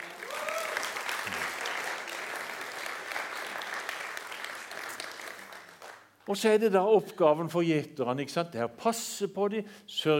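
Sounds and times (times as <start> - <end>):
audience applause: 0.0 - 6.0
speech: 6.3 - 10.1.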